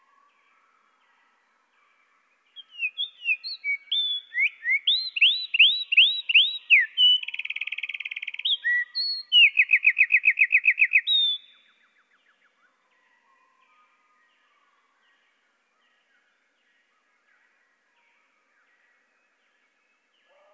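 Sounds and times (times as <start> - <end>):
Eurasian wren singing, slowed: 2.6 - 11.6.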